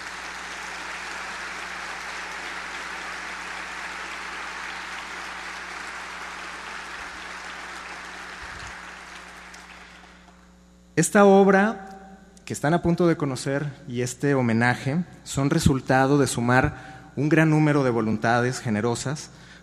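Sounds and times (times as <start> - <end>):
audience applause: 0.0 - 10.4
speech: 11.0 - 11.8, 12.5 - 19.5.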